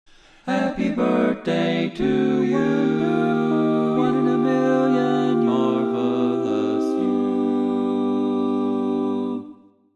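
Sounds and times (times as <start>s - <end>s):
barbershop tenor singing: 0.5s - 9.6s.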